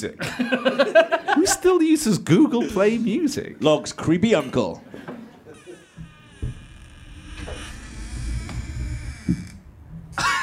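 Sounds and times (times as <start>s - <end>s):
speech: 0.0s - 5.1s
laughter: 0.2s - 1.6s, 4.9s - 5.9s
creaky door sound effect: 5.5s - 10.2s.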